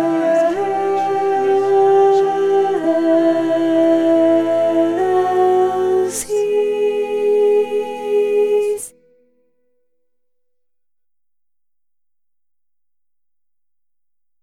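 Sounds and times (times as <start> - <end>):
soprano singing: 0.0 - 9.0.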